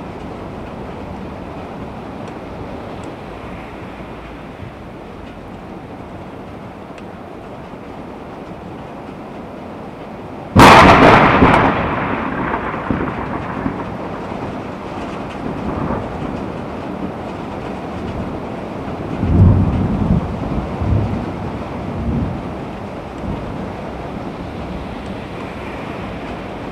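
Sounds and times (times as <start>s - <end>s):
thunder: 10.5s - 26.7s.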